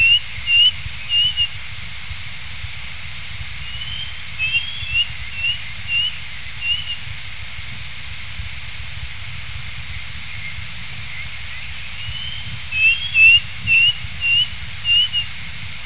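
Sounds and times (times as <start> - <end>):
bird whistled notes: 0.0 - 1.5, 3.7 - 7.0, 12.0 - 15.3.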